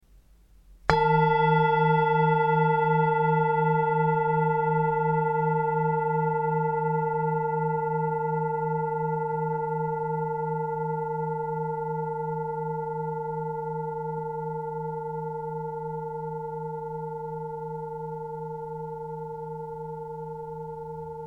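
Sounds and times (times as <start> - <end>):
singing bowl: 0.9 - 21.2.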